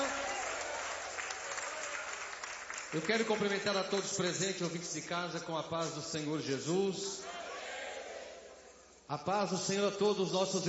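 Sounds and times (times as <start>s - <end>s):
church congregation applauding during a worship service: 0.0s - 4.4s
speech: 2.9s - 7.5s, 9.1s - 10.6s.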